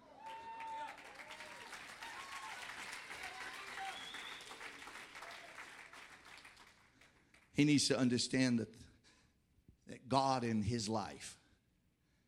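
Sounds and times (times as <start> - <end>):
tepid audience applause: 0.0 - 7.5
speech: 7.6 - 8.9, 10.1 - 11.4.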